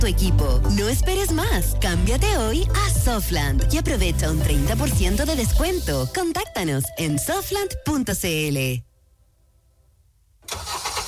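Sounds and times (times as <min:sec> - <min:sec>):
speech: 0:00.1 - 0:08.9
car engine cranking, starting and roaring in a radio advert: 0:10.4 - 0:11.0.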